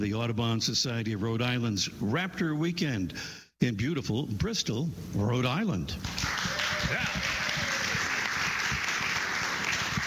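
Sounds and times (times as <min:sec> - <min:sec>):
speech: 0:00.0 - 0:07.4
studio audience applauding at Audubon Society of Rhode Island Raptor Weekend in Bristol: 0:06.0 - 0:10.0.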